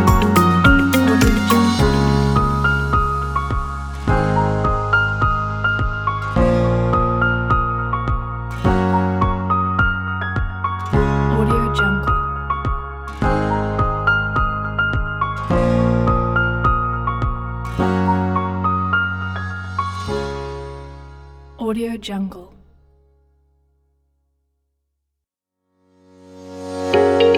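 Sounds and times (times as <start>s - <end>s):
inspiring corporate music: 0.0s - 21.0s, 26.6s - 27.3s.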